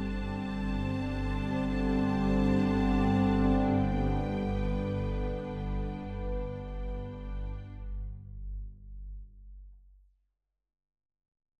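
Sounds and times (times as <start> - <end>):
brass instruments: 0.0 - 8.0.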